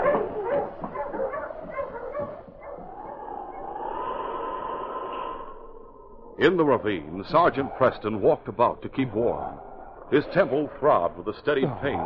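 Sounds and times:
husky dog barking: 0.0s - 3.2s
speech: 6.4s - 12.0s.

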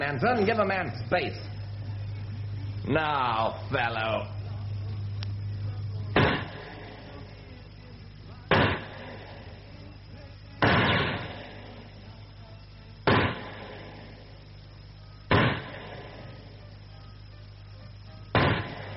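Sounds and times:
speech: 0.0s - 1.6s, 2.9s - 4.4s
hiss: 0.0s - 18.9s
gunshots in a target shooting match: 6.2s - 6.9s, 8.5s - 9.4s, 10.6s - 11.7s, 13.0s - 14.0s, 15.3s - 16.3s, 18.4s - 18.9s.

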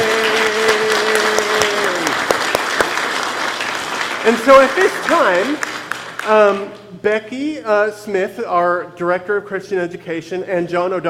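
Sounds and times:
audience applause: 0.0s - 6.6s
speech: 4.3s - 5.7s, 6.3s - 11.0s.

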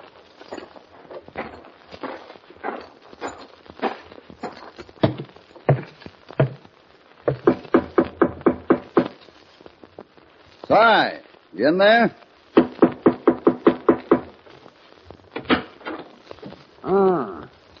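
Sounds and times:
horse hooves clopping: 0.0s - 9.4s, 12.6s - 16.8s
footsteps on wooden boards: 0.3s - 9.2s, 12.6s - 14.4s
speech: 10.8s - 12.2s.

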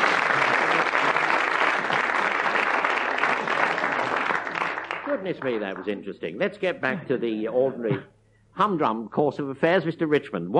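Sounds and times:
audience applause: 0.0s - 6.0s
speech: 5.2s - 10.5s.

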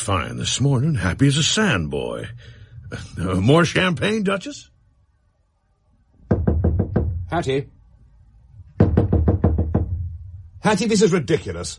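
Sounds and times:
speech: 0.0s - 4.7s, 7.3s - 7.8s, 10.6s - 11.7s
knocking on a door: 6.2s - 7.5s, 8.7s - 10.5s.

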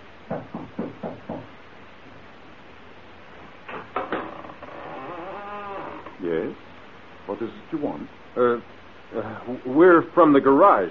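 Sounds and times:
knocking on a door: 0.2s - 1.6s
speech: 7.4s - 10.8s.

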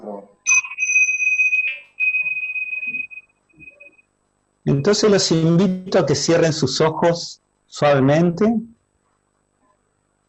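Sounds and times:
bells chiming: 0.5s - 4.0s
speech: 4.7s - 8.7s.

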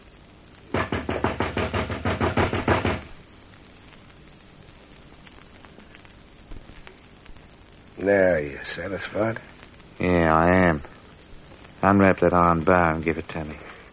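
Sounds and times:
knocking: 0.7s - 3.2s
speech: 8.0s - 11.0s, 11.8s - 13.8s.

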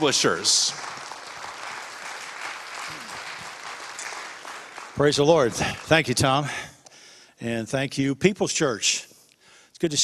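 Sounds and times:
speech: 0.0s - 0.9s, 5.0s - 6.7s, 7.4s - 9.1s, 9.8s - 10.0s
church congregation applauding a welcomed guest: 0.0s - 6.5s.

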